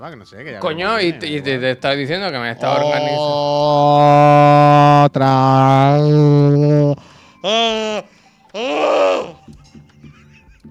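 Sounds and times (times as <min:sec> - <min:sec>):
speech: 0:00.0 - 0:09.3
person shouting: 0:02.6 - 0:09.4.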